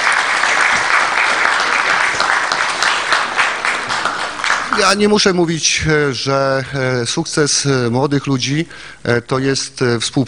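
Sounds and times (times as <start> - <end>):
audience applause: 0.0 - 5.1
speech: 4.8 - 10.2.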